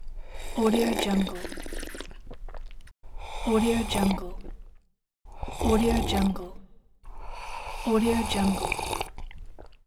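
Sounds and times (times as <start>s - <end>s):
slurping: 0.7s - 2.9s, 5.3s - 6.5s, 7.2s - 9.8s.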